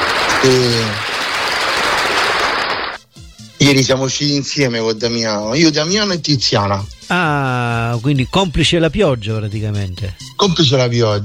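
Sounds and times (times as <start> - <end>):
applause: 0.0 - 3.0
speech: 0.4 - 1.0, 3.7 - 11.2.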